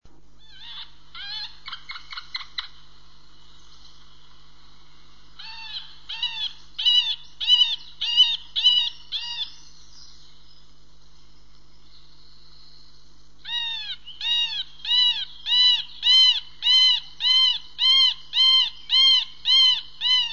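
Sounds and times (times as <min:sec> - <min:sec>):
middle spotted woodpecker contact call: 0:00.4 - 0:04.0, 0:05.4 - 0:10.3, 0:13.4 - 0:20.3.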